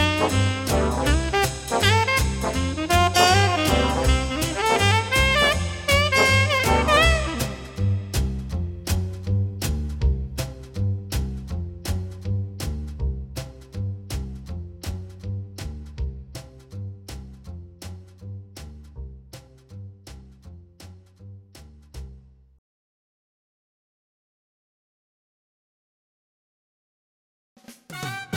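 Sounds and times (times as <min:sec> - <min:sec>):
music ambience in a basement: 0:00.0 - 0:21.9.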